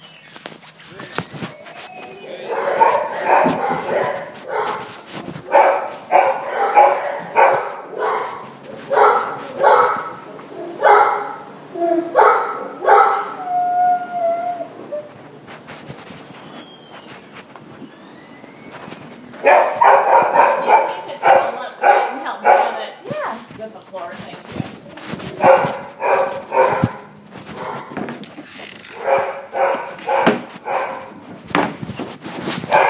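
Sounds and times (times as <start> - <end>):
dog whining: 0.9 - 21.2, 24.4 - 32.1
dog barking: 2.4 - 11.5, 12.2 - 13.4, 19.4 - 23.0, 25.4 - 28.0, 29.0 - 31.2, 32.7 - 32.8.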